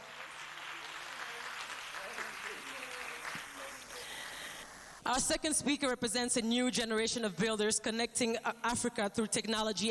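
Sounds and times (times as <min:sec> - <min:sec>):
audience applause: 0:00.0 - 0:05.0
speech: 0:05.1 - 0:09.8.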